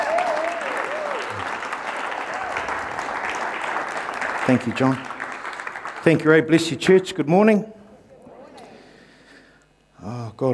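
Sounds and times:
church audience applauding: 0.0s - 6.8s
speech: 4.5s - 5.1s, 6.0s - 7.8s.

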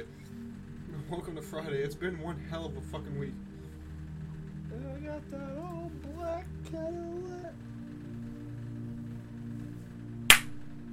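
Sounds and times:
steady low electrical hum: 0.0s - 10.9s
speech: 1.1s - 3.5s, 4.7s - 7.7s
hand clap: 10.3s - 10.6s.

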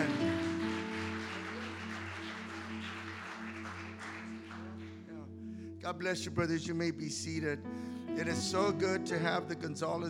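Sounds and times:
audience applause: 0.0s - 5.1s
speech: 5.8s - 10.0s.

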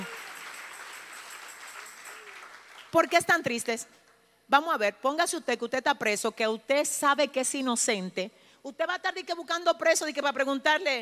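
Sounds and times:
audience applause: 0.0s - 3.0s
speech: 2.9s - 10.9s.

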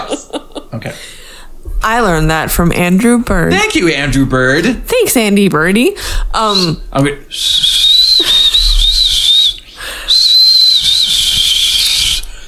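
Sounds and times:
speech: 0.8s - 1.2s, 1.8s - 7.6s
person whistling a tune: 7.4s - 12.3s.

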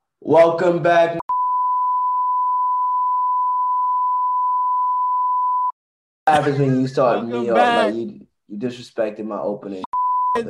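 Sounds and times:
speech: 0.2s - 1.2s, 6.3s - 10.4s
censor bleep tone: 1.3s - 5.8s, 10.0s - 10.4s.

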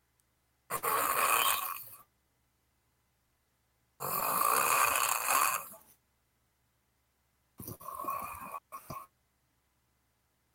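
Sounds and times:
snoring: 0.7s - 2.0s, 4.0s - 5.9s, 7.6s - 9.1s.

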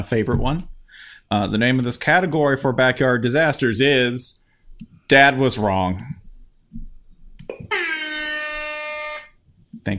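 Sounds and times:
speech: 0.0s - 0.7s, 1.3s - 4.4s, 5.1s - 6.8s
air horn blast: 7.6s - 9.4s.

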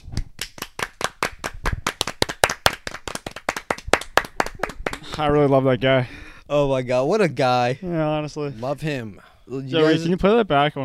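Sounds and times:
round of applause: 0.2s - 5.3s
speech: 5.2s - 10.8s.

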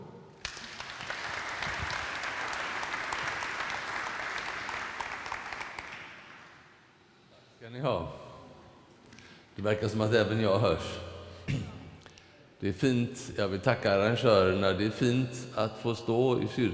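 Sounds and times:
audience applause: 0.4s - 6.6s
speech: 7.7s - 8.2s, 9.6s - 11.7s, 12.6s - 16.7s.

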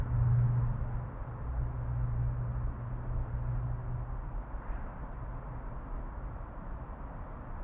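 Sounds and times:
deeper engine-like hum: 0.0s - 6.4s
traffic rumble in an urban backyard in Oakland, CA: 0.0s - 7.5s
faint sharp ticks and clicks: 2.1s - 3.0s.

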